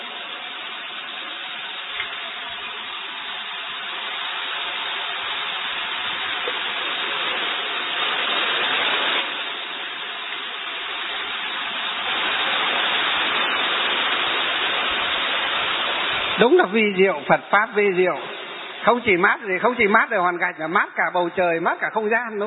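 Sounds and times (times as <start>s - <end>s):
heavy rain: 0.0s - 22.4s
speech: 16.4s - 22.4s.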